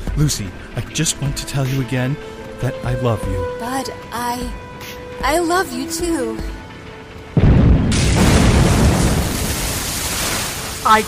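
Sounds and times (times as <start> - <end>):
speech: 0.2 - 6.6, 10.8 - 11.0
explosion of a giant whale: 7.4 - 10.8.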